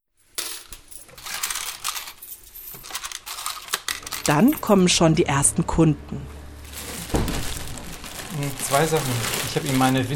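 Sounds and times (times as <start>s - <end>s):
coins clattering in a metal tray of a cash register: 0.2s - 4.8s
speech: 4.2s - 6.3s, 8.7s - 10.1s.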